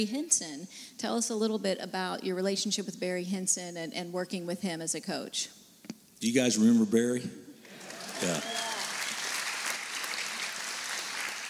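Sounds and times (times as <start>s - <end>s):
speech: 0.0s - 5.6s, 6.2s - 7.5s, 8.2s - 8.7s
quiet audience applause: 7.7s - 11.4s.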